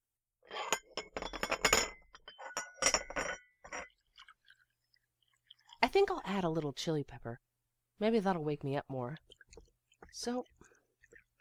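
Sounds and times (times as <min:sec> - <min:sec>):
ceramic cups clinking and knocking: 0:00.5 - 0:03.9
coffee poured from a percolator into cups: 0:03.0 - 0:06.8, 0:09.1 - 0:11.3
speech: 0:06.0 - 0:09.4, 0:10.1 - 0:10.5.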